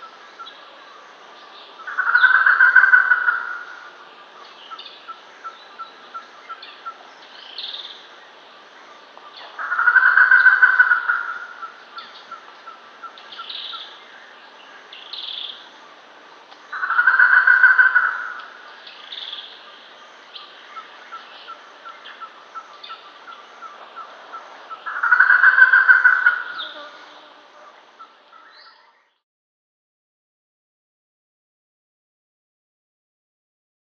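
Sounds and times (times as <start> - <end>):
Germain's peacock-pheasant cackling: 1.8 - 3.9, 9.6 - 13.9, 16.7 - 18.6, 20.8 - 26.6.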